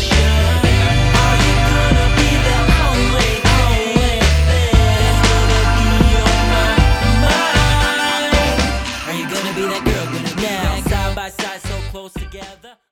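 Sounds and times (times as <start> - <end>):
hip hop music: 0.0 - 12.8.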